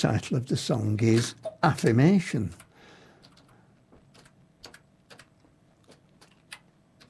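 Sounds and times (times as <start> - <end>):
speech: 0.0 - 2.6
slow hesitant typing on a computer keyboard: 2.5 - 7.0.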